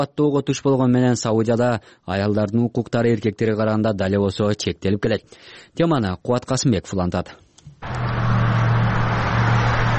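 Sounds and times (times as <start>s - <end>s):
speech: 0.0s - 8.1s
car traffic on streets in Saudi Arabia: 7.8s - 9.9s.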